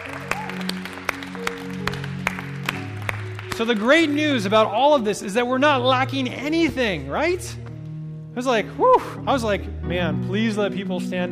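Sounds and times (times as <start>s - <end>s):
group applause in a hall: 0.0s - 4.6s
speech: 3.6s - 7.6s, 8.4s - 11.3s.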